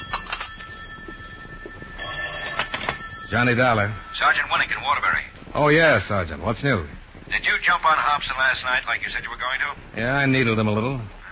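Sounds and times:
old-fashioned telephone ringing: 0.0 - 6.3
speech: 3.3 - 11.2.

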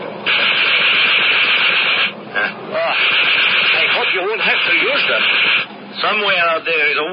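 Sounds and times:
fighter plane machine guns firing: 0.2 - 2.2, 3.0 - 5.7
speech: 4.6 - 7.1.

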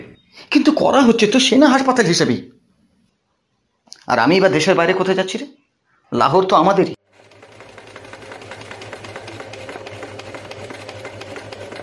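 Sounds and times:
speech: 0.5 - 2.6, 4.1 - 7.0
sewing machine stitching clothes in a shop: 7.0 - 11.8.

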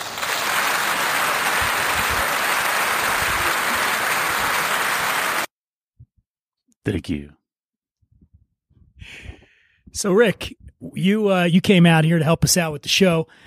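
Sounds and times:
audience applauding to welcome a podcast guest: 0.0 - 5.5
speech: 6.9 - 7.4, 9.9 - 13.4.

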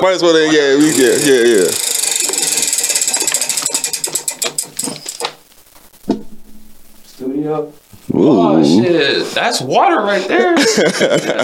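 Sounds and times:
speech: 0.0 - 1.9, 7.4 - 11.4
prize wheel spinning and clicking: 0.6 - 5.4
laughter: 10.2 - 11.4.

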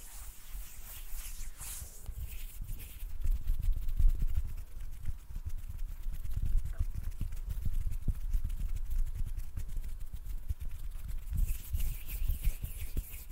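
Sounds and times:
hissing swishes: 0.0 - 2.5
hands rubbing and scraping: 0.0 - 13.3.

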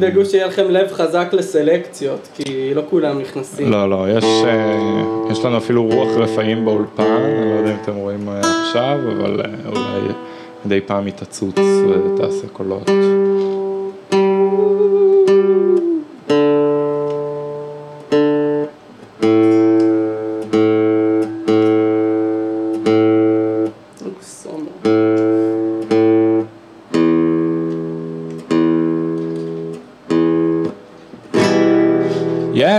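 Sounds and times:
speech: 0.0 - 13.5
guitar being tuned: 3.5 - 32.7.

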